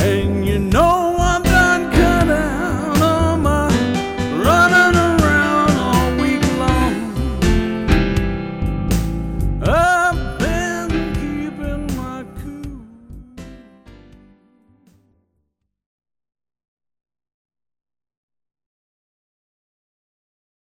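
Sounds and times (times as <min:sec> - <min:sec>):
downhome blues music: 0:00.0 - 0:15.0.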